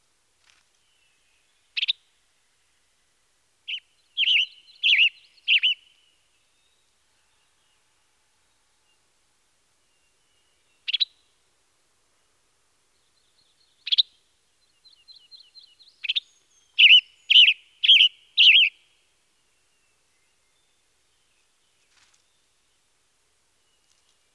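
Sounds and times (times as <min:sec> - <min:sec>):
western tanager chirping: 0:00.5 - 0:02.4, 0:03.7 - 0:09.1, 0:09.8 - 0:11.5, 0:12.9 - 0:22.9.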